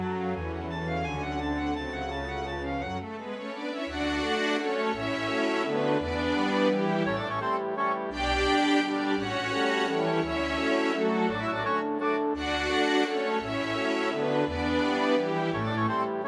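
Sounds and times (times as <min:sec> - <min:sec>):
orchestra playing a waltz: 0:00.0 - 0:16.2.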